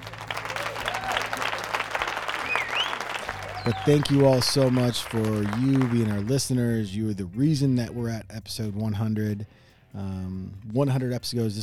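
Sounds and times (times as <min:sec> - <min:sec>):
applause sound effect: 0:00.0 - 0:06.6
speech: 0:03.6 - 0:11.6.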